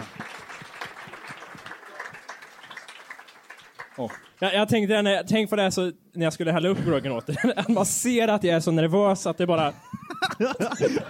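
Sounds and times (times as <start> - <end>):
applause: 0.0 - 4.7
speech: 4.0 - 11.0
laughter: 6.8 - 7.9, 9.8 - 11.0.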